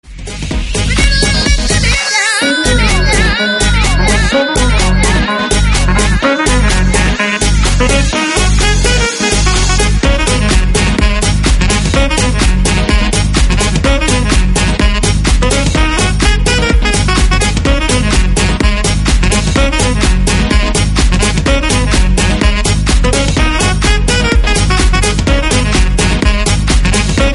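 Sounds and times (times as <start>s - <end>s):
saxophone playing: 0.8s - 27.3s.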